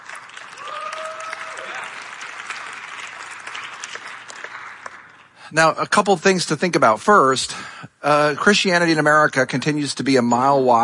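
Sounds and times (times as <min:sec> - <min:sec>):
audience applause: 0:00.0 - 0:05.4
speech: 0:05.5 - 0:10.8.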